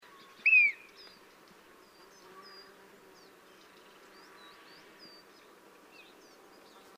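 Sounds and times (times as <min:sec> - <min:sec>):
faint background hiss: 0:00.0 - 0:06.9
Bearded vulture whistle: 0:00.5 - 0:00.8.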